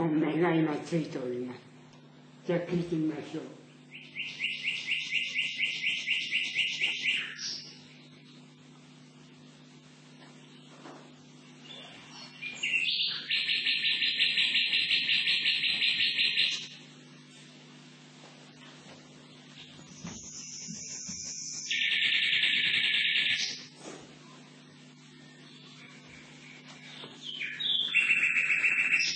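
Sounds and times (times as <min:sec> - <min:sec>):
low steady hum: 0:00.0 - 0:29.1
speech: 0:00.2 - 0:01.7, 0:02.4 - 0:03.6
recorded song of a nightingale, the sayonakidori: 0:03.8 - 0:08.5, 0:11.5 - 0:16.8, 0:19.2 - 0:29.1.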